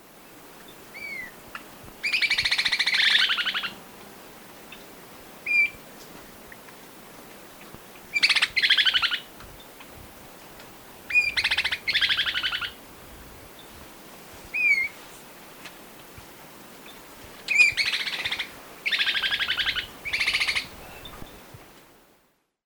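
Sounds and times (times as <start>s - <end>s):
White-backed fire-eye calling in South America: 0.9s - 3.8s, 4.7s - 5.8s, 7.6s - 9.9s, 11.1s - 12.8s, 14.5s - 15.0s, 16.8s - 21.4s.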